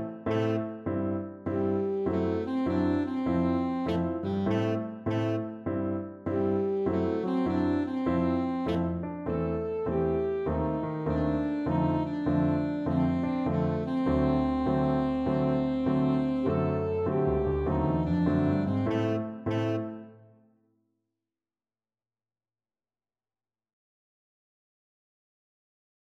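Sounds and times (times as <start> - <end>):
saxophone: 0.0 - 20.3.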